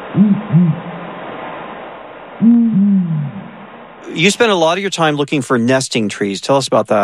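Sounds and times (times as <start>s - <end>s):
owl pair hooting in synchronized duet: 0.0s - 0.9s, 2.4s - 4.2s
faint hiss: 0.0s - 7.0s
speech: 0.2s - 0.9s, 4.1s - 7.0s.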